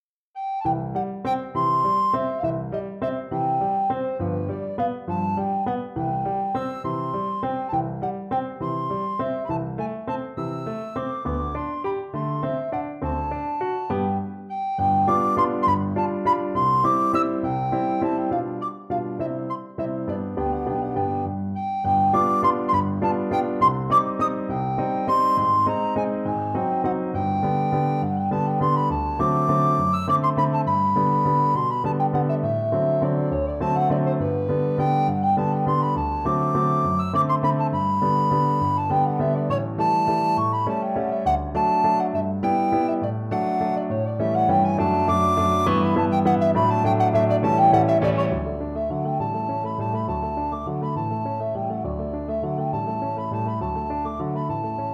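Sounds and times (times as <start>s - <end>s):
alto recorder: 0.4s - 54.9s.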